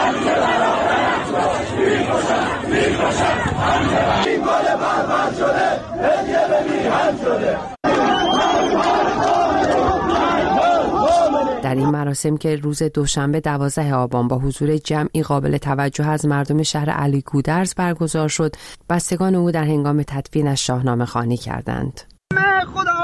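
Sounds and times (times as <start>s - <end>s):
crowd chanting anti-government slogans at funeral: 0.0s - 11.9s
speech: 12.1s - 22.9s.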